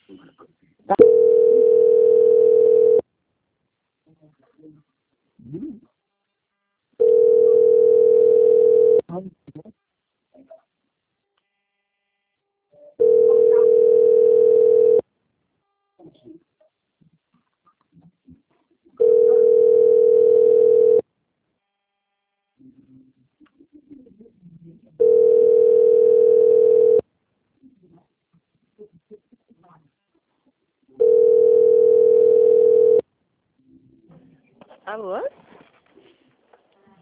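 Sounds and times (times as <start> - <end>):
telephone line beeps while a call is transferred: 1.0 - 3.0, 7.0 - 9.0, 13.0 - 15.0, 19.0 - 21.0, 25.0 - 27.0, 31.0 - 33.0.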